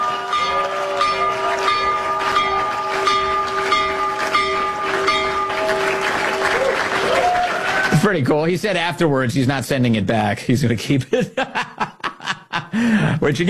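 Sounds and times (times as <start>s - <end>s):
New York Stock Exchange opening bell ringing: 0.0s - 7.1s
speech: 8.0s - 12.0s, 12.8s - 13.4s
laughter: 11.0s - 13.3s.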